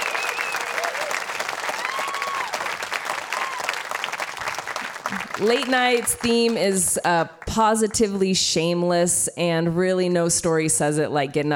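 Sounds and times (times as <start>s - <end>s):
audience whoops: 0.0s - 4.0s
audience applause at a live storytelling event: 0.0s - 6.8s
speech: 5.1s - 11.5s.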